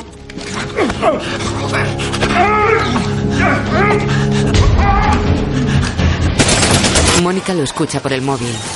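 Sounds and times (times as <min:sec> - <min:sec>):
speech: 0:01.0 - 0:05.0, 0:07.2 - 0:08.7
people shouting: 0:02.2 - 0:05.5
submachine gun fire: 0:06.4 - 0:07.4.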